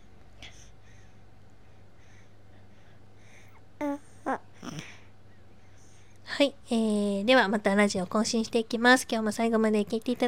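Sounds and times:
low steady hum: 0.0 - 10.2
two-month-old baby cooing: 3.8 - 4.9
speech: 6.4 - 10.2.

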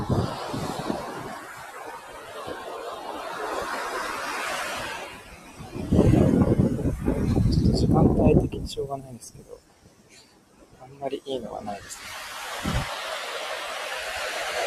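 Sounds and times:
seaside surf washing in: 0.0 - 8.5, 10.8 - 14.6
gusty sea wind buffeting the microphone: 0.0 - 9.6, 11.7 - 13.2
speech: 8.2 - 9.6, 11.0 - 12.2.

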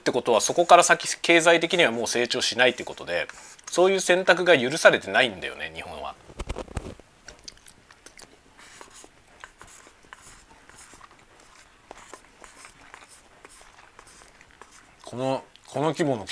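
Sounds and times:
speech: 0.1 - 6.2, 15.1 - 16.3
chewing food while eating lunch: 7.3 - 15.8.

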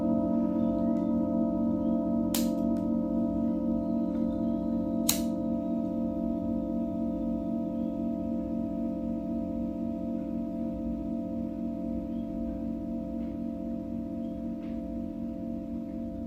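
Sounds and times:
singing bowl from Mexico ringing: 0.0 - 16.2.

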